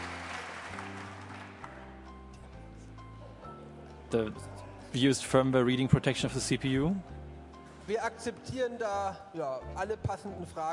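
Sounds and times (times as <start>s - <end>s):
audience applause: 0.0s - 1.7s
speech: 4.1s - 7.1s, 7.9s - 10.7s.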